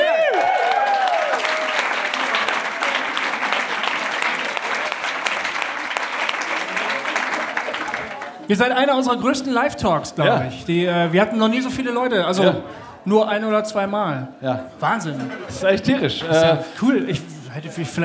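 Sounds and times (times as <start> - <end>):
live audience applause and cheering: 0.0 - 8.5
speech: 8.5 - 18.0
laughter: 15.0 - 18.0.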